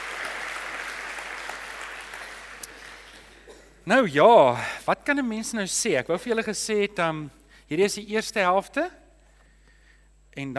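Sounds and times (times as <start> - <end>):
audience applause: 0.0 - 3.3
speech: 3.9 - 9.0, 10.4 - 10.5.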